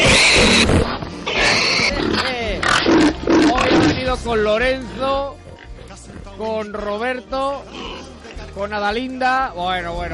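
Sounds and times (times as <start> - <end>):
pet piglet and companion pigs grunting and squealing in a studio: 0.0 - 6.2, 7.5 - 8.5
speech: 4.2 - 5.4, 6.4 - 10.1.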